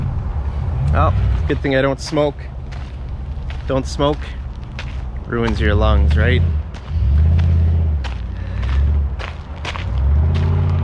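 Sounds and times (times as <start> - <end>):
loud truck engine revving: 0.0 - 2.1, 5.3 - 10.8
speech: 1.0 - 2.6, 3.7 - 4.4, 5.3 - 6.6
footstep-like thuds and scuffs: 1.2 - 10.8.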